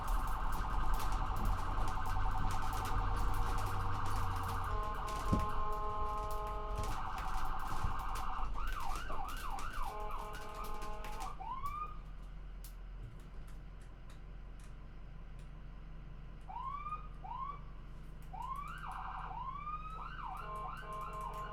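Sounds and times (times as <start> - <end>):
ambulance driving with siren: 0.0 - 12.1, 16.4 - 21.5.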